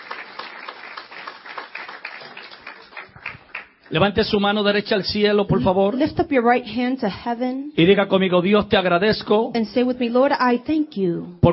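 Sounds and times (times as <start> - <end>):
church congregation applauding: 0.0 - 4.4
speech: 3.9 - 11.5.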